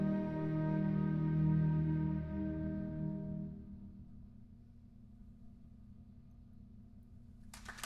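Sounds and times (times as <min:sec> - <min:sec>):
wind symphony playing an adagio: 0:00.0 - 0:03.6.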